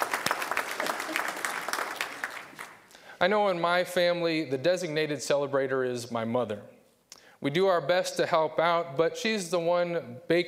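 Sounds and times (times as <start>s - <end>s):
audience applause: 0.0s - 2.9s
speech: 3.2s - 6.7s, 7.4s - 10.4s.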